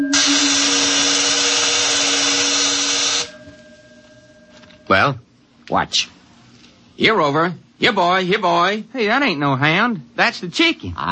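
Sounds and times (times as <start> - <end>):
sci-fi energy field electric buzz: 0.0 - 4.9
sci-fi energy field low humming tone: 0.0 - 5.4
speech: 4.9 - 6.2, 7.0 - 11.1.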